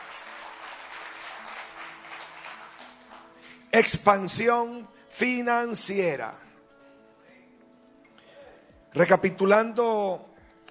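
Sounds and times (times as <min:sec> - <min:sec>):
audience applause: 0:00.0 - 0:03.6
speech: 0:03.8 - 0:06.4, 0:09.0 - 0:10.3.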